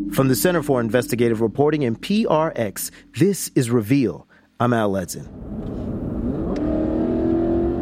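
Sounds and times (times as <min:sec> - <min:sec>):
speech: 0:00.1 - 0:05.8
car engine accelerating through the streets of Antioch, California: 0:05.3 - 0:07.7
road rumble: 0:05.3 - 0:07.7.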